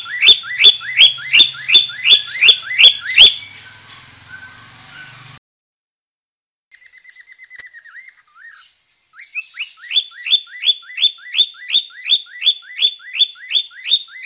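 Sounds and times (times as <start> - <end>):
budgerigar chirping with rising whistled notes: 0.0 - 5.2, 9.2 - 14.2.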